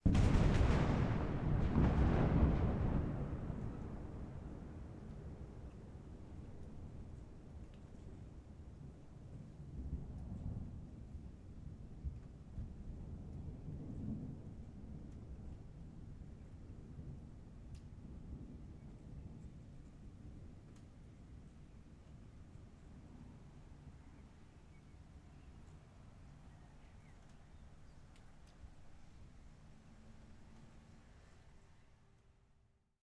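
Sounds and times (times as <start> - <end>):
lightning strike impact: 0.0 - 4.8.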